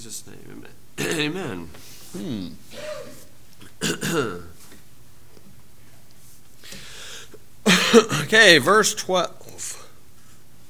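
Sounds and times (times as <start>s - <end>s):
speech: 0.0s - 3.2s, 3.8s - 4.6s, 7.9s - 9.8s
person clearing throat: 2.7s - 4.6s.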